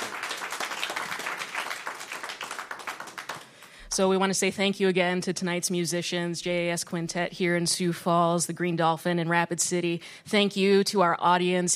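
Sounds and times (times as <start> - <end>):
audience applause: 0.0 - 3.8
speech: 3.9 - 11.7.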